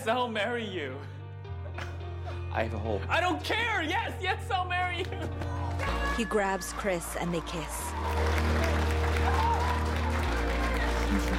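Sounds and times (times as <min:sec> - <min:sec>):
speech: 0:00.0 - 0:01.2, 0:02.6 - 0:08.7
applause from a small group celebrating a marriage proposal: 0:05.0 - 0:11.3.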